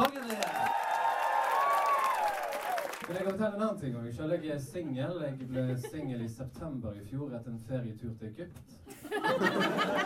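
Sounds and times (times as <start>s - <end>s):
audience applause: 0.0s - 3.4s
speech: 3.1s - 10.0s
laughter: 4.8s - 6.3s, 8.9s - 10.0s.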